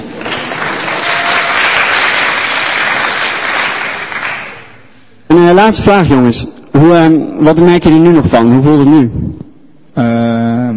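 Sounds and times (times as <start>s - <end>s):
audience applause: 0.0s - 4.8s
speech: 5.5s - 9.4s, 10.0s - 10.3s.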